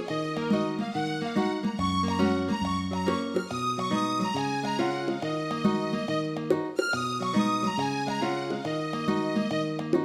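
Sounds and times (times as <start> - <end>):
tavern music midi rip: 0.0 - 10.0.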